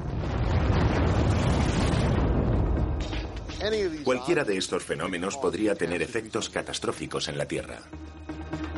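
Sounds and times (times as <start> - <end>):
rumbling explosion sound effect: 0.0 - 4.2
speech: 3.7 - 8.6.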